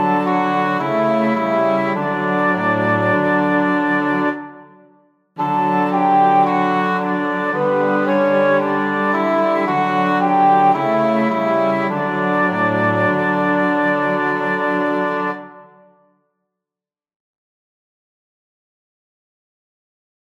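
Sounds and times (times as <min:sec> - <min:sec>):
instrumental music in D major with three voices: 0:00.0 - 0:16.1.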